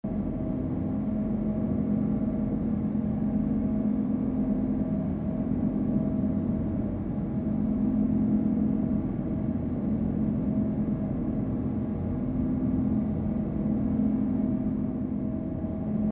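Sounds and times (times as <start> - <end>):
machine room tone: 0.1 - 16.1.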